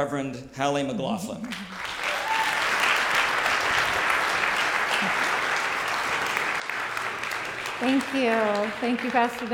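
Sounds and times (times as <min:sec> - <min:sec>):
speech: 0:00.0 - 0:01.9, 0:07.8 - 0:09.5
church congregation applauding to welcome a guest speaker: 0:01.5 - 0:09.5.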